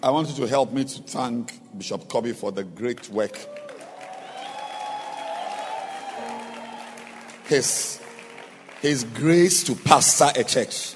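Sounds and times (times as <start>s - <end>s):
speech: 0.0s - 3.6s, 7.5s - 8.0s, 8.8s - 10.9s
audience applauding: 3.0s - 10.9s.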